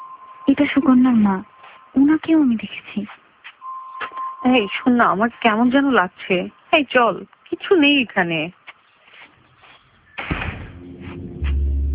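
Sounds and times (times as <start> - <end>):
speech: 0.5 - 3.2, 4.4 - 8.6
door closing: 10.2 - 11.6
low rumble: 10.4 - 11.9.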